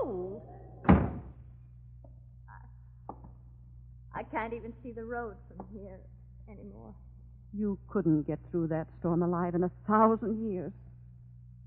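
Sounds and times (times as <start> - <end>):
heavy door shutting with a low thud: 0.8 - 1.4
speech: 4.4 - 10.8.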